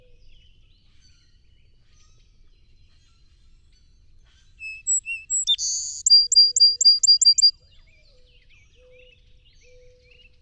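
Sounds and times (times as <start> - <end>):
song sparrow song of whistles, buzz and trill: 4.6 - 7.5.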